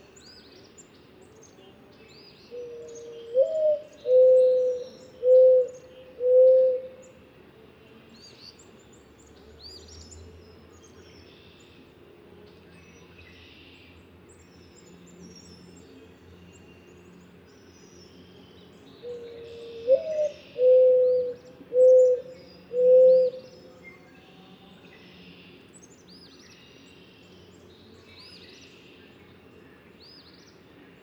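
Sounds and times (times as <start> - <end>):
mourning dove cooing: 2.5 - 7.0, 19.0 - 23.7.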